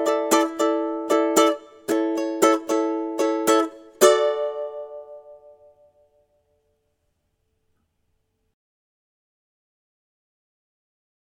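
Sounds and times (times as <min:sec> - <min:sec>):
ukulele rhythm study: 0:00.0 - 0:06.0.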